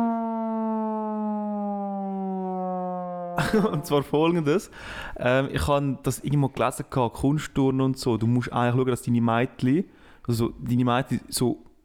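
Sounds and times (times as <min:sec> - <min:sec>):
steady droning alarm siren: 0:00.0 - 0:03.9
laughter: 0:03.4 - 0:04.7
speech: 0:03.5 - 0:11.7.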